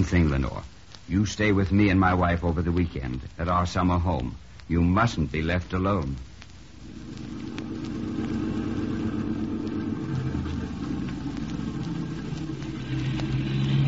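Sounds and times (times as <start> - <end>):
speech: 0.0 - 6.3
car driving past: 7.5 - 13.8.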